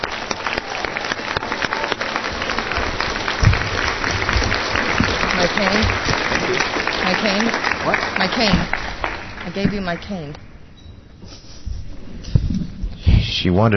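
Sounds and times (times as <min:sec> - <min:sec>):
audience applause: 0:00.0 - 0:10.4
speech: 0:07.2 - 0:08.8, 0:09.5 - 0:10.5, 0:13.4 - 0:13.7.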